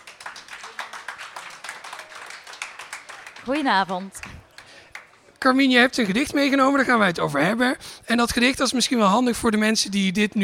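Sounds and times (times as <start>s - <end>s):
audience applause: 0.0s - 5.2s
speech: 3.4s - 4.3s, 5.4s - 10.4s.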